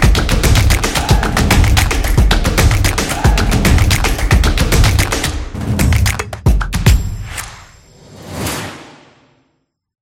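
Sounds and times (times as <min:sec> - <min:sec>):
drums: 0:00.0 - 0:07.5
claps: 0:00.0 - 0:07.7
percussion: 0:00.0 - 0:08.9.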